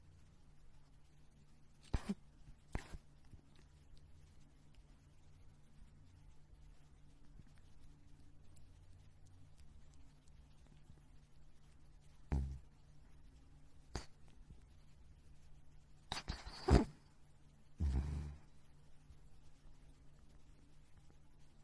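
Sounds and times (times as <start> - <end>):
small dog snoring: 1.9 - 3.0, 12.3 - 12.6, 16.1 - 17.0, 17.8 - 18.5.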